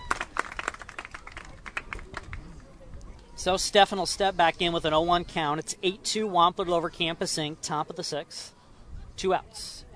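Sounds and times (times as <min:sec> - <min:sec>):
round of applause: 0:00.0 - 0:02.6
speech: 0:03.4 - 0:08.6, 0:09.2 - 0:09.9.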